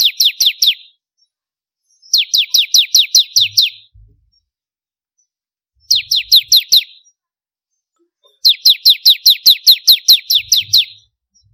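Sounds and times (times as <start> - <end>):
Prinia singing sharp descending chips: 0.0 - 4.5, 5.2 - 7.2, 8.3 - 11.5
soft low rumble: 4.0 - 4.4.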